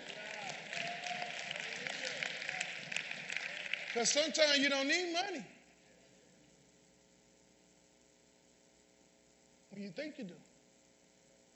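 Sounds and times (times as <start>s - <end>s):
audience clapping: 0.0s - 5.4s
speech: 4.0s - 5.6s, 9.8s - 10.5s.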